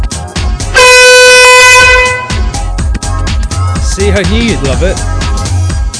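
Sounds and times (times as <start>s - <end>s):
thumping beat: 0.0s - 5.9s
beep test start beep: 0.8s - 1.8s
speech: 4.1s - 5.2s.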